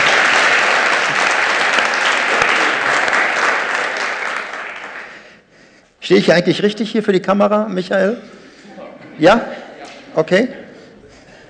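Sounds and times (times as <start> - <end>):
audience applause: 0.0 - 5.3
speech: 6.1 - 8.4, 9.2 - 10.6.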